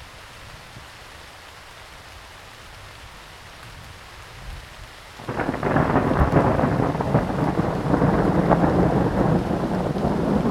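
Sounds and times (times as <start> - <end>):
thunderstorm loud dense roar: 5.2 - 10.4
thunderstorm low rumble: 5.2 - 10.4.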